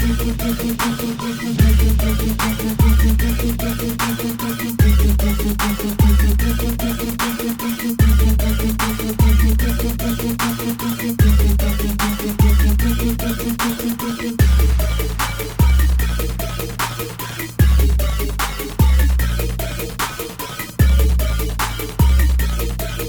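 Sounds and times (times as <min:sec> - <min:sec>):
trap music: 0:00.0 - 0:23.0.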